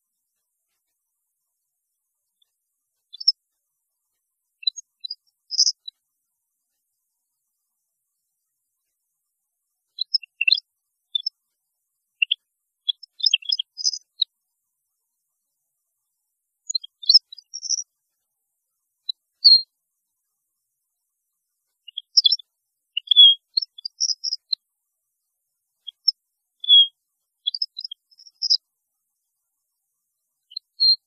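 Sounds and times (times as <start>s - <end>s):
European goldfinch song: 3.1s - 3.3s, 4.6s - 5.9s, 10.0s - 11.3s, 12.2s - 14.2s, 16.7s - 17.8s, 21.9s - 22.4s, 23.0s - 24.5s, 25.9s - 28.6s.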